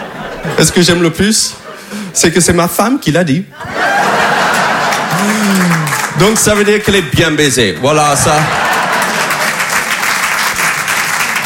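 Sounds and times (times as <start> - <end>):
laughter: 0.0 - 2.2, 3.6 - 6.7, 8.1 - 9.9
speech: 0.4 - 3.9, 5.2 - 8.7
audience applause: 3.8 - 6.9, 8.3 - 11.4.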